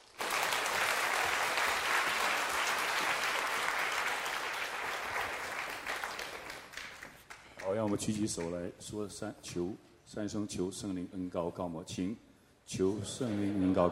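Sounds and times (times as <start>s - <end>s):
audience applause: 0.0s - 8.0s
speech: 7.7s - 13.9s.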